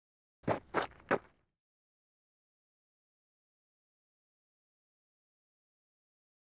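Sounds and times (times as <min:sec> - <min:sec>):
baseball cleats footsteps: 0:00.4 - 0:01.4.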